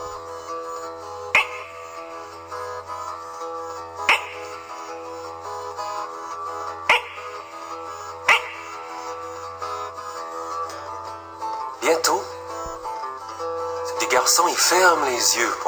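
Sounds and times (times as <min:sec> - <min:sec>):
frogs croaking: 0:00.0 - 0:10.3
steady sustained musical background: 0:00.0 - 0:15.6
speech: 0:14.4 - 0:15.6.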